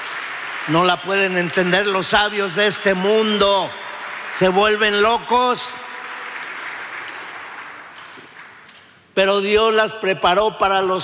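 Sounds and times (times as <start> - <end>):
audience applause: 0.0 - 8.7
speech: 0.7 - 3.8, 4.4 - 5.8, 9.2 - 11.0.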